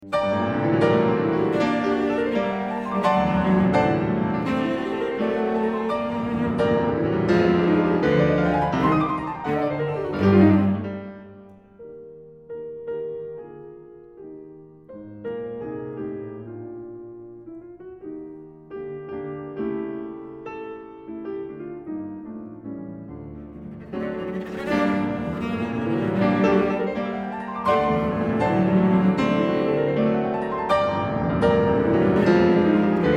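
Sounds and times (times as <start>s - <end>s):
cello: 0.0s - 33.1s
piano: 0.0s - 33.1s.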